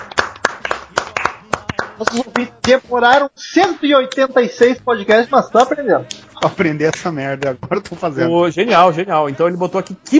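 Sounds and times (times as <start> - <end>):
hand clapping: 0.0 - 4.3, 5.6 - 8.0
speech: 2.0 - 10.1.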